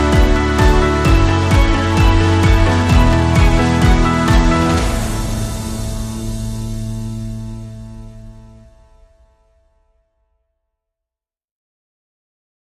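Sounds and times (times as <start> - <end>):
strings and keys music: 0.0 - 8.9.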